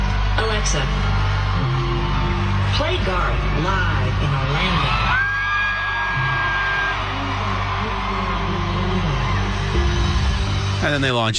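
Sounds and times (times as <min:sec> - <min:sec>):
concert crowd cheering: 0:00.0 - 0:11.3
speech: 0:00.6 - 0:01.8, 0:02.8 - 0:05.2, 0:10.8 - 0:11.3
whoops and yells: 0:04.6 - 0:09.8.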